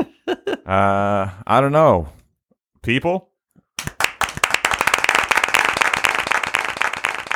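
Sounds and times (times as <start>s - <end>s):
speech: 0.7s - 2.2s, 2.8s - 3.3s
studio audience applause sound effect: 3.8s - 7.3s.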